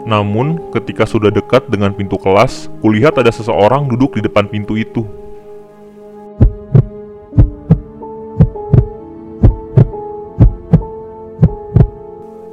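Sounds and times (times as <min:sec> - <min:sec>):
speech: 0:00.1 - 0:05.2
fast heartbeat: 0:06.4 - 0:12.0.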